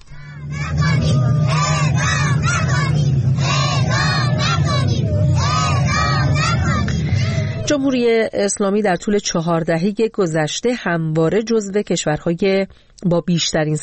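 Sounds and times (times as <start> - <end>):
protest crowd shouting: 0.1 - 7.0
speech: 7.7 - 13.8.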